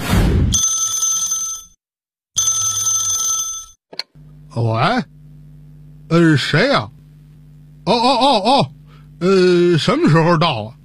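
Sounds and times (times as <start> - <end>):
telephone ringing in a residential compound: 0.6 - 1.8, 2.4 - 3.8
speech: 4.6 - 5.2, 6.1 - 7.0, 7.9 - 10.8.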